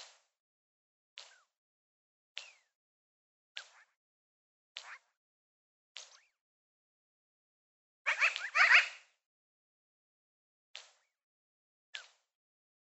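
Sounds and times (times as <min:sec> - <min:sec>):
magpie giving scratchy chirps: 0:08.1 - 0:09.0.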